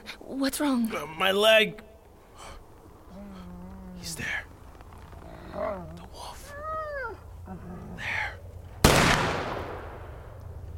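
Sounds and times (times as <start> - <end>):
speech: 0.3 - 1.9, 4.0 - 4.5, 5.6 - 6.3
gunshot: 8.8 - 10.2.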